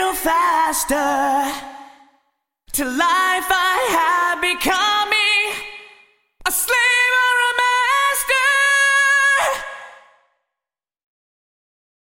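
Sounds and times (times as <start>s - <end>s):
vocals with Yamaha SPX2000 wood chamber reverb: 0.0s - 10.6s.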